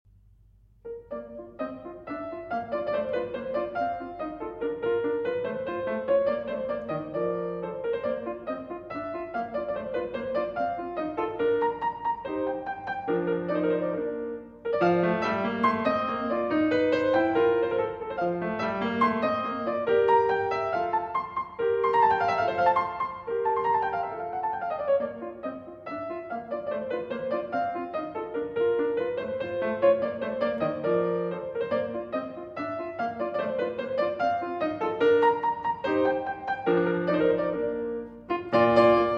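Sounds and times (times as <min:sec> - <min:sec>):
piano sonata allegretto: 0:00.1 - 0:39.1.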